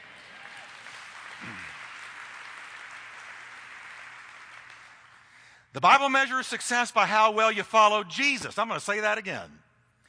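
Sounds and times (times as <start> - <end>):
audience applauding: 0.0 - 5.6
faint cheers: 0.1 - 1.9
speech: 5.8 - 9.6.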